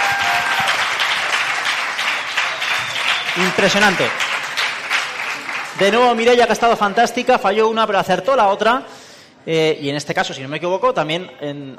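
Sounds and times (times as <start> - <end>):
audience applause: 0.0 - 7.2
speech: 3.4 - 4.2, 5.8 - 11.7.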